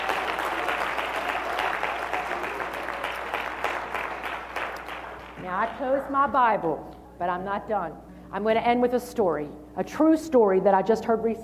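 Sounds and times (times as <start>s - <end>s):
audience applause: 0.0s - 5.8s
speech: 5.5s - 11.4s.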